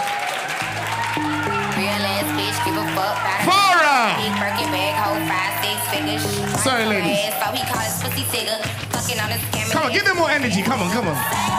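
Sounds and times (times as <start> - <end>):
audience applause welcoming three guests onto a stage: 0.0 - 11.5
sustained musical notes stepping through chord changes: 0.6 - 7.1
speech: 2.6 - 11.5.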